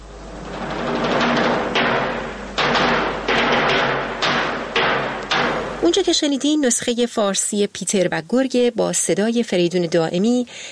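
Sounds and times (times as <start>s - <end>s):
big kettledrum timpani beats: 0.0s - 6.5s
speech: 5.9s - 10.7s.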